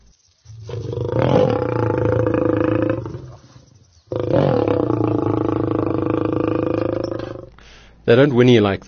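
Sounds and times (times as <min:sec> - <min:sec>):
lion roaring: 0:00.7 - 0:07.5
speech: 0:08.1 - 0:08.8.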